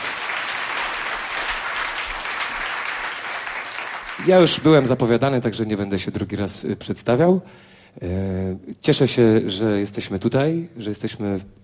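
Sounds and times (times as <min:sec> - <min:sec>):
audience applause after a cellist is introduced at a live concert: 0:00.0 - 0:05.1
speech: 0:04.2 - 0:11.6.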